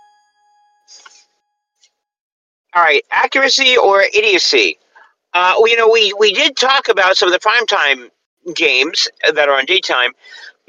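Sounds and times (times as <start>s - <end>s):
bell ding: 0.0s - 1.6s
speech: 2.8s - 10.6s.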